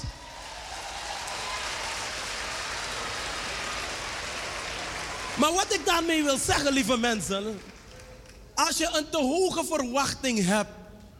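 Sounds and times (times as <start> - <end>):
audience applauding: 0.0 - 8.4
speech: 5.4 - 7.7, 8.6 - 10.8.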